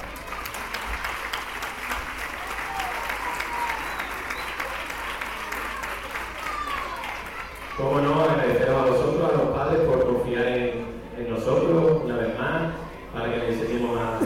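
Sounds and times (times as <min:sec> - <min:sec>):
audience applause: 0:00.0 - 0:08.4
speech: 0:07.8 - 0:14.2.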